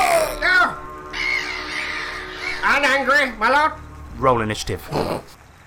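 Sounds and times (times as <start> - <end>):
hideous screeching of oil-covered winged creatures: 0.0 - 3.1
speech: 2.8 - 5.4.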